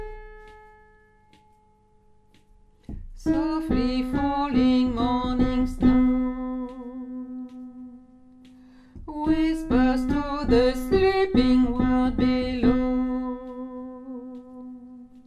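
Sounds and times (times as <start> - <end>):
alto voice: 3.2 - 8.3, 9.1 - 15.2.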